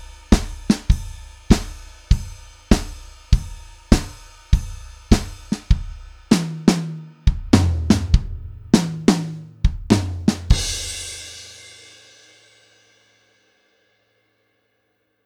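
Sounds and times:
blues swing drum kit: 0.0s - 11.7s.

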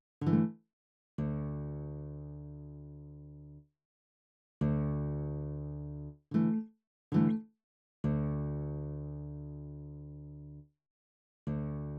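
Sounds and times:
classical acoustic guitar: 0.2s - 0.6s, 1.2s - 3.6s, 4.6s - 7.4s, 8.0s - 10.6s, 11.5s - 11.9s.

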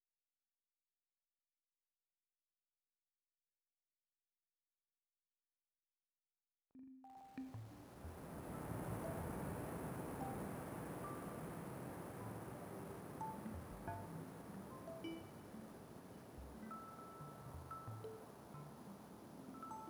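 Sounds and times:
ambience: 7.4s - 19.8s.

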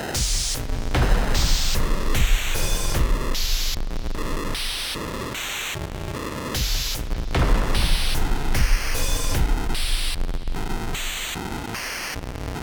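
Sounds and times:
percussion: 0.1s - 12.5s
noise effects: 0.2s - 12.3s.

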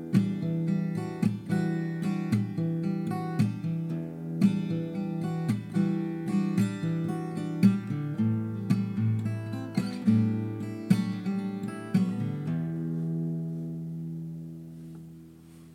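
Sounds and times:
acoustic guitar chords in E minor: 0.0s - 15.7s.

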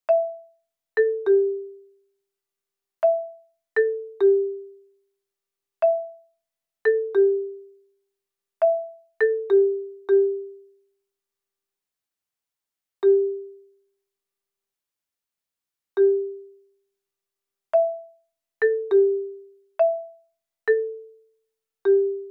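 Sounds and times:
marimba: 0.1s - 2.0s, 3.0s - 5.0s, 5.8s - 7.8s, 8.6s - 10.8s, 13.0s - 13.8s, 16.0s - 16.7s, 17.8s - 21.2s, 21.8s - 22.2s.

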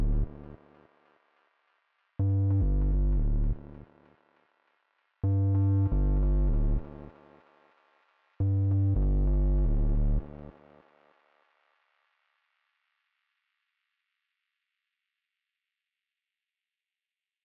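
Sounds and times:
deep sub bass: 0.0s - 0.5s, 2.2s - 3.8s, 5.3s - 6.9s, 8.4s - 10.3s.

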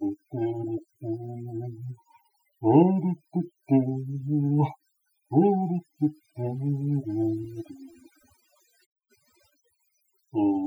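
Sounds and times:
vocal loop: 0.0s - 8.0s, 10.4s - 10.6s.

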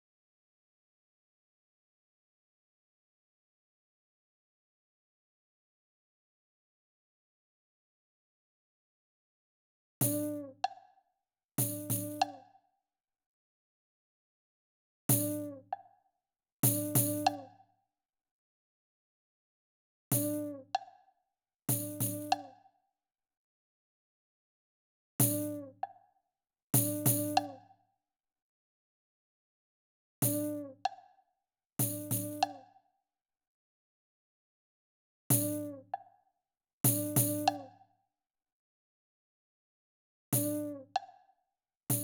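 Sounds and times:
percussion: 10.0s - 10.9s, 11.6s - 12.6s, 15.1s - 16.0s, 16.6s - 17.6s, 20.1s - 21.0s, 21.7s - 22.7s, 25.2s - 26.0s, 26.8s - 27.7s, 30.2s - 31.1s, 31.8s - 32.8s, 35.3s - 36.2s, 36.8s - 37.9s, 40.4s - 41.2s.

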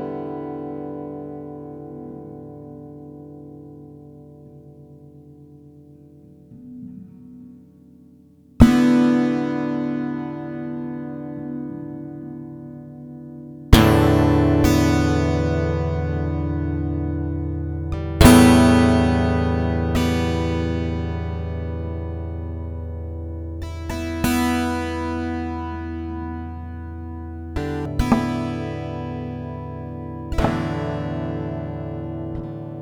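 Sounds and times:
two guitars improvising: 0.0s - 32.8s.

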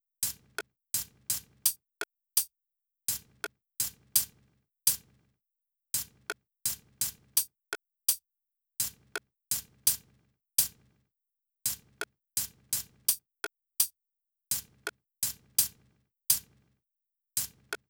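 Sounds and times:
drums: 0.2s - 1.8s, 3.1s - 5.2s, 6.0s - 7.5s, 8.8s - 11.0s, 11.7s - 13.2s, 14.5s - 16.7s, 17.4s - 17.8s.

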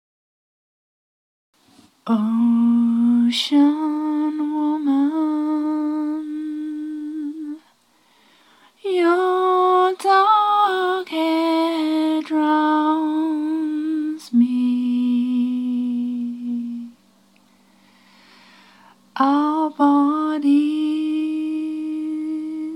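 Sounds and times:
woman singing: 2.0s - 7.7s, 8.8s - 17.0s, 19.1s - 22.7s.

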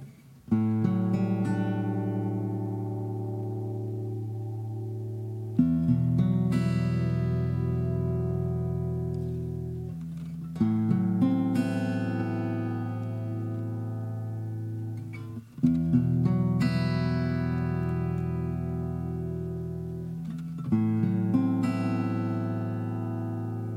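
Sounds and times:
guitar motif in E minor at 95 BPM with volume pedal effect: 0.0s - 23.7s.

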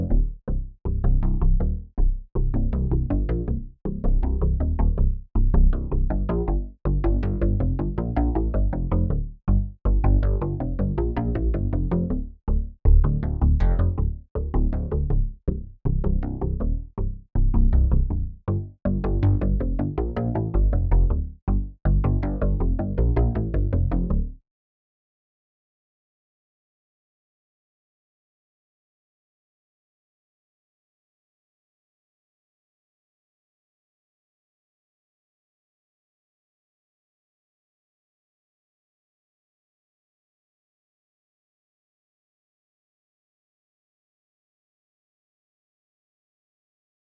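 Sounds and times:
bass: 0.0s - 24.4s.

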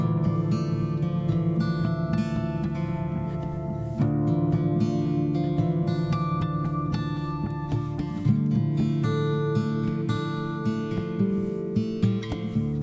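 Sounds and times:
spooky blues music: 0.0s - 12.8s.

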